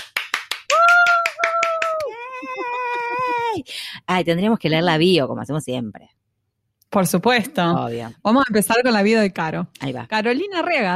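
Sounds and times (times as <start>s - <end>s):
loud applause: 0.0s - 2.2s
speech: 3.6s - 6.2s, 6.9s - 10.9s.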